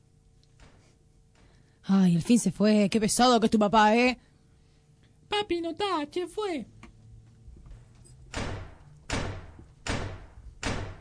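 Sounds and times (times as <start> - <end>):
quiet low hum: 0.0 - 10.7
speech: 1.9 - 4.3, 5.4 - 6.7
door banging shut: 8.3 - 10.9.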